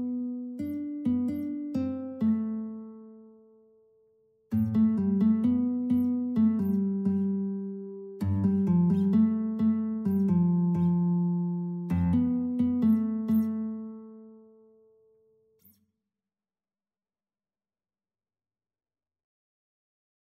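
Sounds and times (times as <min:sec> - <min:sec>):
classical guitar: 0:00.0 - 0:15.8.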